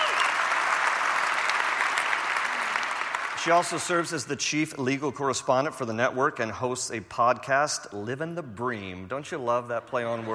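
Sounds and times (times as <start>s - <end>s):
audience applause: 0.0s - 4.1s
speech: 3.4s - 10.3s.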